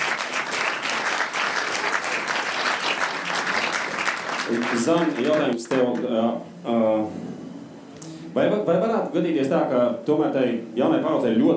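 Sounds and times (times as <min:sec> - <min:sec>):
audience applause: 0:00.0 - 0:06.1
speech: 0:04.5 - 0:07.4, 0:08.4 - 0:11.5.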